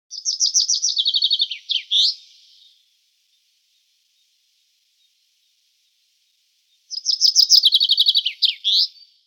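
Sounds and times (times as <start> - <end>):
chaffinch calling: 0.1 - 2.8, 6.7 - 9.1.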